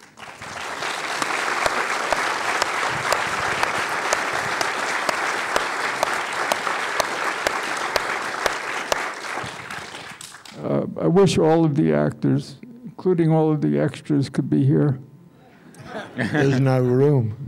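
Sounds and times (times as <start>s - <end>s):
audience applause: 0.0s - 10.6s
speech: 11.1s - 15.1s, 16.2s - 17.4s
laughter: 15.4s - 17.0s.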